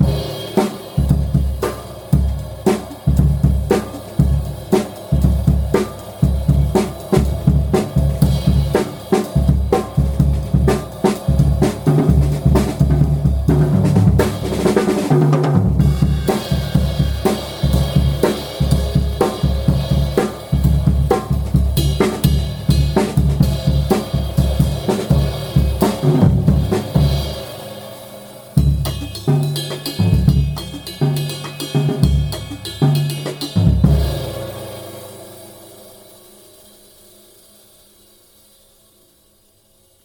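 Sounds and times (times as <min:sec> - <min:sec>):
Zildjian K Custom 20 inch cymbal: 0:00.0 - 0:40.0.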